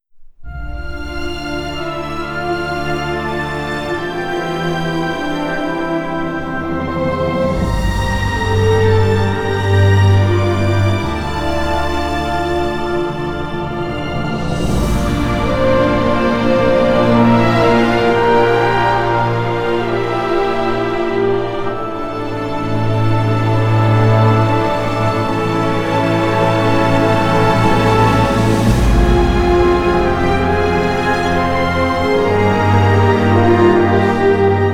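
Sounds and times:
wind-swept emotional dramatic cinematic music: 0.4 - 34.7.

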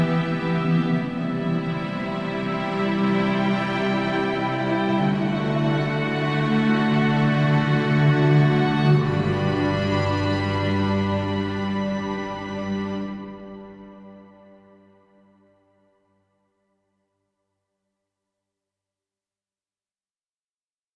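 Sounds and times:
relaxed ambient music: 0.0 - 16.0.

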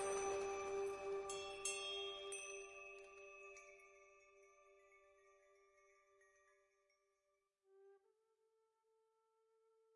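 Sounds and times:
flute: 0.0 - 3.6
Tibetan singing bowls: 0.0 - 6.2.

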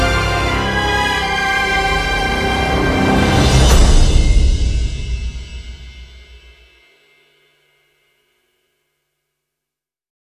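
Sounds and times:
epic action and adventure instrumental music: 0.0 - 6.6.

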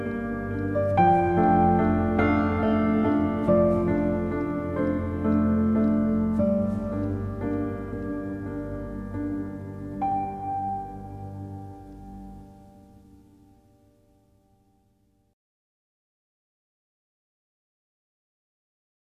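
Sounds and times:
gentle rain: 0.0 - 14.1
relaxing piano lullaby: 0.0 - 15.4.

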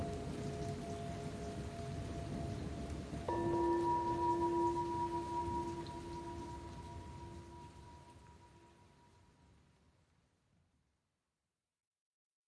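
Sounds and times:
Tibetan singing bowls for yoga: 0.0 - 8.8
rain at night: 0.0 - 10.4.

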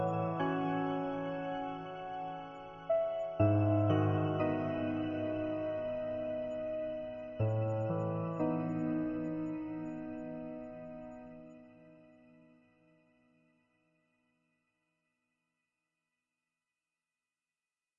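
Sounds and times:
piano: 0.0 - 13.4.

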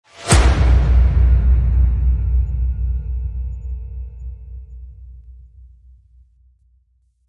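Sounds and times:
epic damage impact: 0.1 - 5.2.

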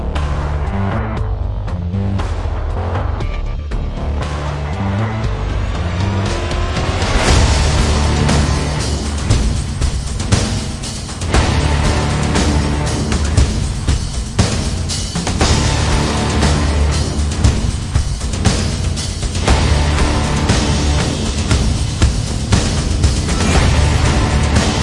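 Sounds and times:
music: 0.0 - 24.8.

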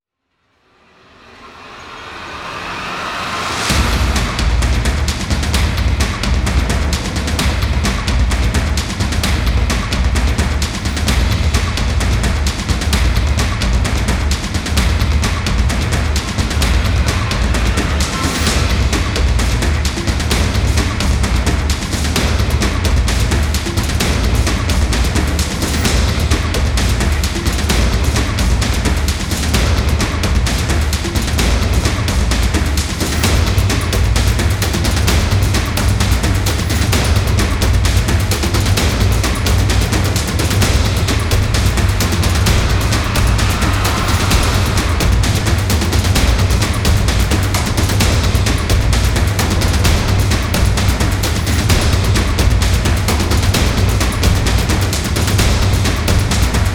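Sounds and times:
percussion: 0.5 - 56.7.

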